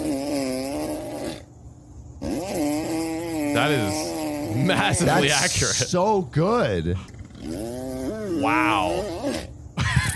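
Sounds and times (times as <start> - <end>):
child imitating lawnmower: 0.0 - 1.4, 2.2 - 5.9, 7.4 - 9.5
speech: 3.6 - 7.8, 8.4 - 9.5.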